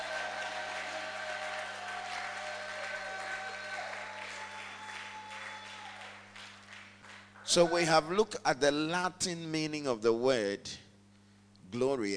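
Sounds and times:
audience shouting: 0:00.0 - 0:06.0
audience clapping: 0:00.0 - 0:07.8
speech: 0:07.6 - 0:10.8, 0:11.7 - 0:12.1.

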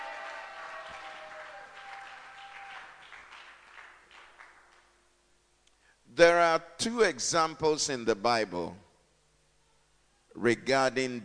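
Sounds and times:
audience shouting amen: 0:00.0 - 0:03.0
audience clapping hands: 0:00.0 - 0:05.0
speech: 0:06.2 - 0:08.8, 0:10.4 - 0:11.2.

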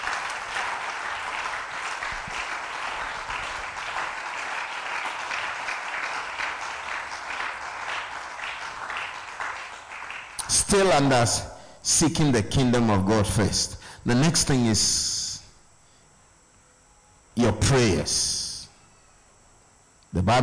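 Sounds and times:
audience clapping hands: 0:00.0 - 0:11.1
speech: 0:10.7 - 0:15.1, 0:17.7 - 0:18.4, 0:20.2 - 0:20.4.

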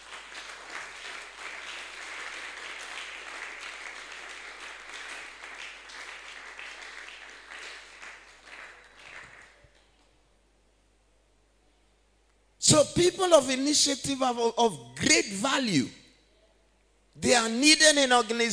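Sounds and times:
audience clapping: 0:00.0 - 0:10.2
speech: 0:12.7 - 0:16.0, 0:17.2 - 0:18.5.

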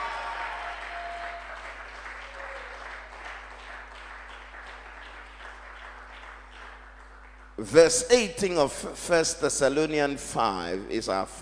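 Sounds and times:
audience clapping and cheering: 0:00.0 - 0:07.9
speech: 0:07.6 - 0:11.4.

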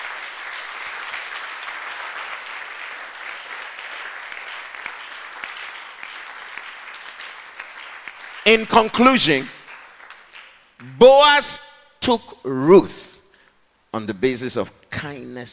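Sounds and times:
audience clapping: 0:00.0 - 0:11.6
speech: 0:08.5 - 0:09.6, 0:11.0 - 0:13.1, 0:14.0 - 0:15.5.

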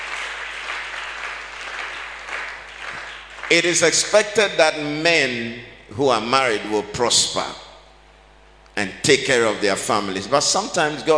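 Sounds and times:
audience applause: 0:00.0 - 0:03.8
speech: 0:03.5 - 0:07.6, 0:08.8 - 0:11.1.

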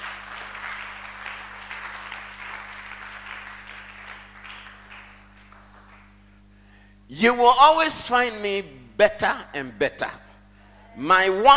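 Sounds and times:
crowd applause: 0:00.0 - 0:06.2
speech: 0:07.1 - 0:10.2, 0:11.0 - 0:11.5.

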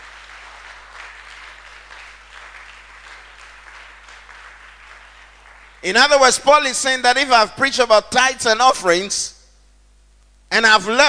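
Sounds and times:
audience clapping: 0:00.0 - 0:06.4
speech: 0:05.8 - 0:09.4, 0:10.5 - 0:11.0.

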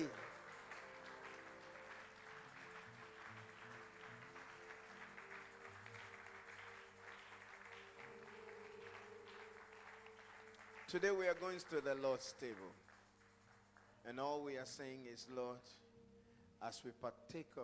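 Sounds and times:
audience clapping and shouting: 0:00.0 - 0:14.0
speech: 0:10.9 - 0:12.8, 0:14.0 - 0:15.8, 0:16.6 - 0:17.6.

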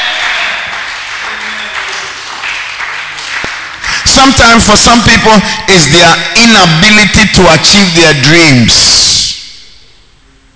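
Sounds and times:
audience clapping: 0:00.0 - 0:04.6
speech: 0:04.2 - 0:09.2.

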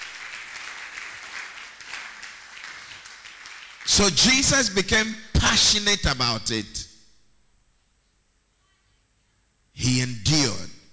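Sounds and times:
audience clapping: 0:00.0 - 0:04.6
speech: 0:03.9 - 0:06.9.

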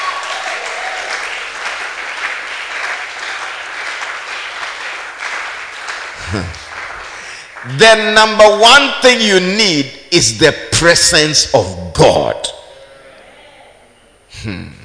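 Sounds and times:
audience applause: 0:00.0 - 0:07.8
speech: 0:06.3 - 0:06.6, 0:07.6 - 0:12.4.

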